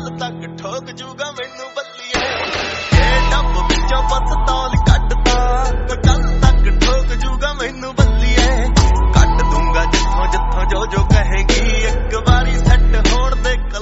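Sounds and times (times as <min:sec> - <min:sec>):
Punjabi ringtone: 0:02.1 - 0:13.5.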